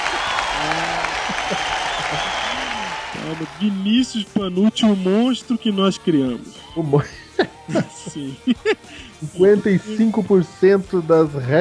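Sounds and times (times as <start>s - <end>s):
audience applause: 0.0s - 4.5s
laughter: 0.0s - 5.8s, 6.6s - 10.4s
speech: 3.3s - 11.5s.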